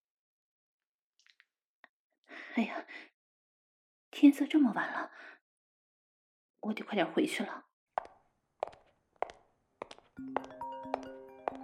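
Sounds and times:
speech: 2.6 - 3.1, 4.2 - 5.3, 6.6 - 7.7
dull thuds like footsteps: 8.0 - 11.6
phone ringing with electronic ringtone melody: 10.2 - 11.6.

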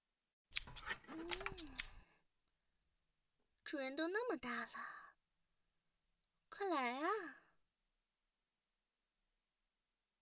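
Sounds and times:
scissors snipping: 0.5 - 2.0
speech: 0.8 - 2.0, 3.7 - 5.0, 6.5 - 7.4.

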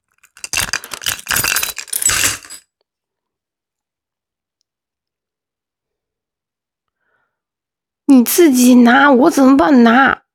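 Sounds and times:
metal buckle of leather belt clinking as pulled out of trousers: 0.1 - 2.6
speech: 8.1 - 10.2.

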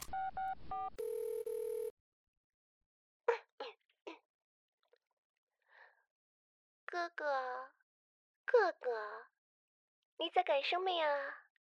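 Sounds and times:
telephone keypad tones dialing for a call: 0.0 - 1.9
speech: 7.0 - 7.8, 8.5 - 9.3, 10.2 - 11.4.

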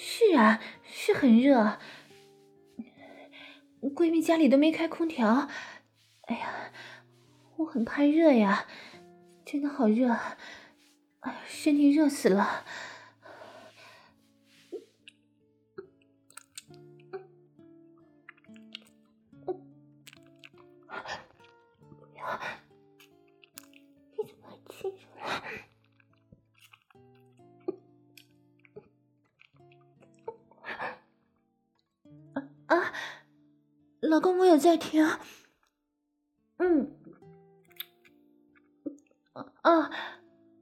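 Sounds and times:
speech: 0.3 - 2.0, 3.8 - 5.7, 6.3 - 6.9, 7.6 - 8.9, 9.5 - 10.6, 11.2 - 12.9, 34.1 - 35.4, 36.6 - 37.0, 39.4 - 40.2
tongue licking lips: 16.3 - 17.1, 18.3 - 19.0, 20.0 - 21.6, 23.0 - 23.9, 25.9 - 27.1, 37.7 - 38.1.

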